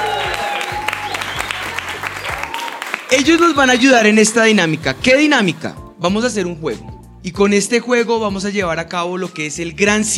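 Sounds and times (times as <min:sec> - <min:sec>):
audience applause welcoming a production assistant: 0:00.0 - 0:04.9
speech: 0:03.1 - 0:10.1.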